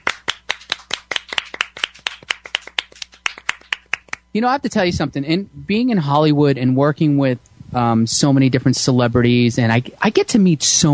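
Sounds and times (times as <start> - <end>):
audience clapping: 0.0 - 4.2
speech: 4.4 - 10.9.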